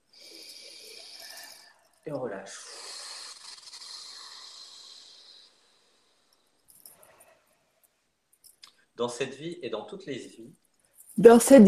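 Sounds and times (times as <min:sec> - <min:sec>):
deep breath in: 0:00.1 - 0:01.9, 0:02.5 - 0:06.4
speech: 0:02.0 - 0:02.8, 0:09.0 - 0:10.6, 0:11.2 - 0:11.6.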